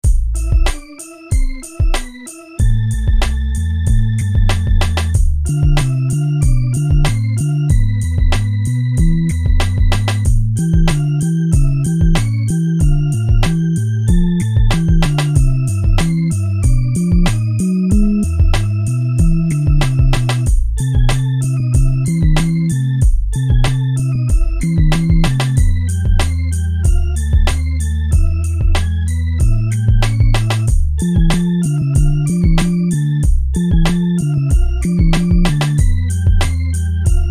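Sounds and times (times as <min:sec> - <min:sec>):
castle hip hop beat: 0:00.0 - 0:37.2.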